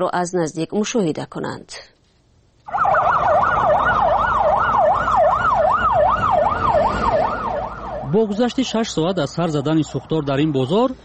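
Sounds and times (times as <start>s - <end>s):
speech: 0.0s - 1.9s, 8.1s - 11.0s
traffic rumble: 2.6s - 11.0s
fire engine siren wailing: 2.7s - 10.2s.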